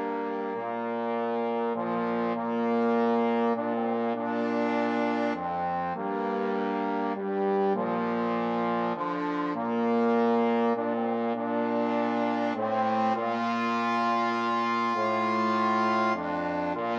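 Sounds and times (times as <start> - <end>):
trombone trio playing a hymn: 0.0 - 16.9.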